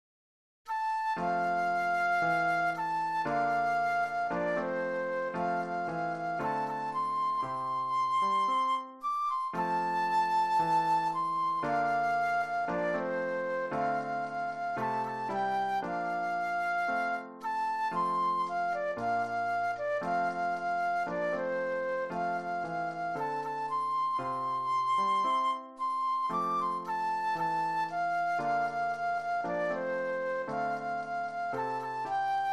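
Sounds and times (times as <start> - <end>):
flute solo: 0.7 - 32.5.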